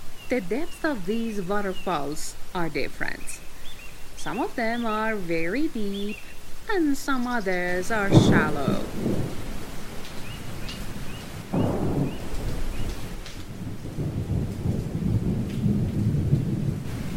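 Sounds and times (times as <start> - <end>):
rain shower: 0.0 - 17.1
speech: 0.3 - 3.5, 4.2 - 9.4
thunder: 8.1 - 9.5, 11.4 - 17.1.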